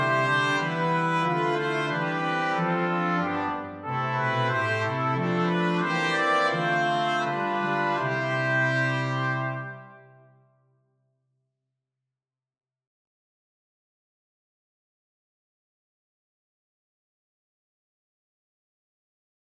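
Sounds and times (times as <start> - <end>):
brass quintet: 0.0 - 10.5.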